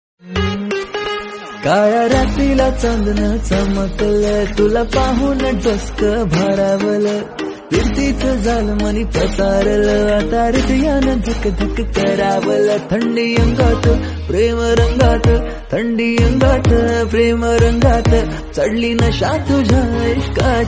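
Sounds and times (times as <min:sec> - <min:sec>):
Marathi song: 0:00.2 - 0:20.6.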